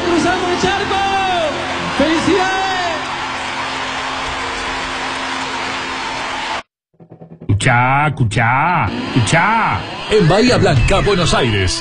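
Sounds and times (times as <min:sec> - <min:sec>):
audience applause: 0:00.0 - 0:06.6
audience cheering: 0:00.0 - 0:06.7, 0:08.9 - 0:11.7
speech: 0:07.6 - 0:11.7.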